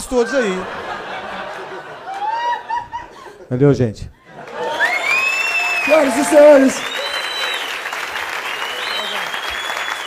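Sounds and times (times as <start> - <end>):
speech: 0.0 - 0.8, 3.5 - 4.2, 5.8 - 6.9
laughter: 0.0 - 3.5, 4.2 - 5.2
audience applause: 0.4 - 2.8, 4.3 - 10.0.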